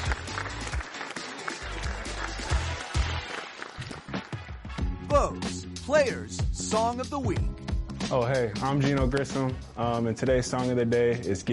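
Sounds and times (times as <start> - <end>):
round of applause: 0.0 - 4.7
speech: 5.2 - 11.5.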